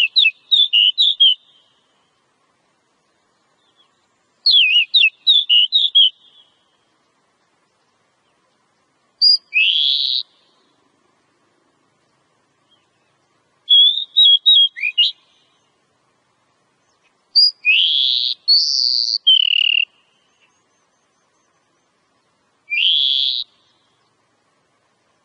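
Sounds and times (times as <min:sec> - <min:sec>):
Oriental magpie-robin song used as a lure recording: 0:00.0 - 0:02.0, 0:03.4 - 0:06.8, 0:09.2 - 0:10.7, 0:12.6 - 0:15.8, 0:16.8 - 0:22.0, 0:22.7 - 0:24.2.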